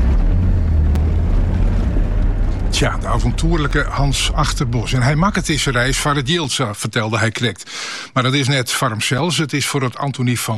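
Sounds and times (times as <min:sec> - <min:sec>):
car engine driving over rough steep terrain: 0:00.0 - 0:06.8
wind buffeting: 0:00.0 - 0:06.8
speech: 0:02.8 - 0:10.5.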